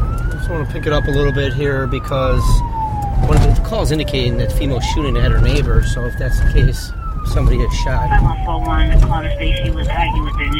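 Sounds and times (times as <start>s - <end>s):
low rumble of road and engine noise: 0.0s - 10.5s
police squad car siren wailing: 0.0s - 10.5s
speech: 0.5s - 10.5s.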